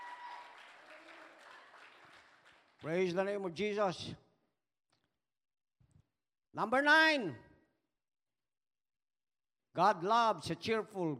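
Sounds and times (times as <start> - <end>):
church service worshippers clapping in praise: 0.0 - 3.5
speech: 2.8 - 4.2, 6.6 - 7.5, 9.8 - 11.1.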